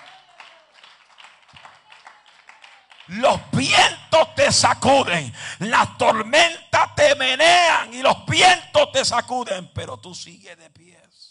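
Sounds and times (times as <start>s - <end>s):
audience applauding: 0.0s - 3.5s
speech: 3.1s - 11.0s.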